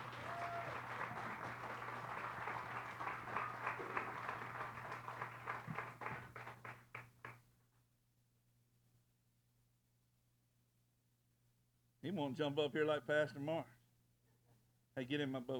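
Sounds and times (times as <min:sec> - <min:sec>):
audience applause: 0:00.0 - 0:07.4
speech: 0:12.1 - 0:13.7, 0:15.0 - 0:15.5.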